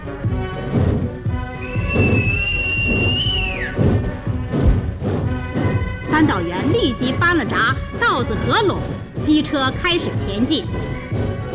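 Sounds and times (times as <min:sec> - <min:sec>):
military band music: 0:00.0 - 0:11.5
long high-pitched whistle blown as a signal to a railway switchman: 0:01.6 - 0:03.8
speech: 0:06.2 - 0:11.0.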